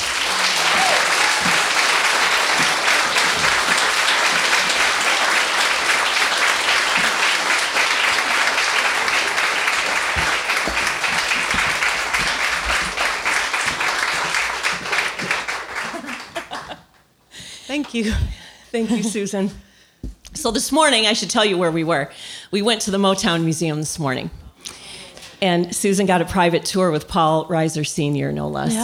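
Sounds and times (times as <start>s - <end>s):
audience applause at a live podcast recording at Willis Show Bar in Detroit: 0.0s - 17.0s
laughter: 0.0s - 17.0s
speech: 18.0s - 19.6s, 20.4s - 24.8s, 25.4s - 28.8s.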